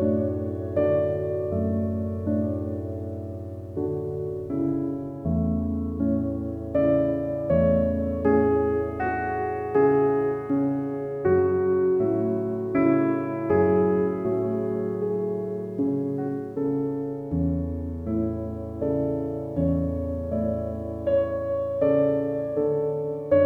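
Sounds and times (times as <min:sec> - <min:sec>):
peaceful classical piano music: 0:00.0 - 0:23.4.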